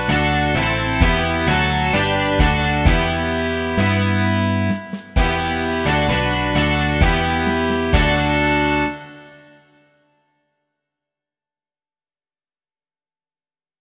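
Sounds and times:
rock music: 0.0 - 9.7.

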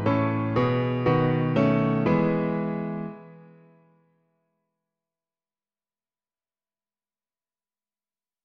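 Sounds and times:
piano version of a hymn: 0.0 - 4.0.

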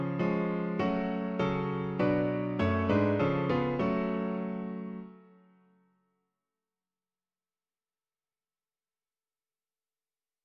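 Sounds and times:
piano: 0.0 - 6.1.

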